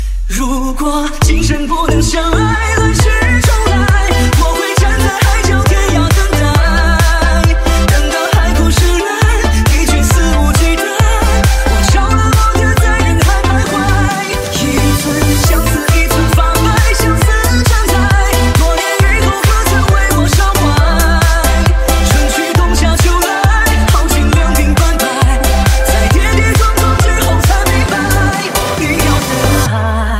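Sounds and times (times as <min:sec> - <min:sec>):
remix music: 0:00.0 - 0:30.1.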